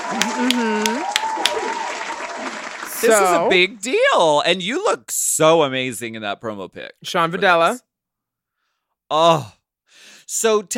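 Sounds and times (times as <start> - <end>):
audience applause: 0.0 - 3.6
speech: 3.0 - 7.9, 9.1 - 9.6, 10.3 - 10.7.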